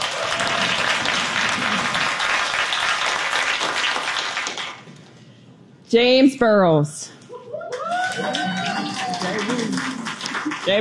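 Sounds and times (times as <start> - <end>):
audience applause: 0.0 - 4.9, 7.7 - 10.7
speech: 5.9 - 7.2, 8.2 - 10.7.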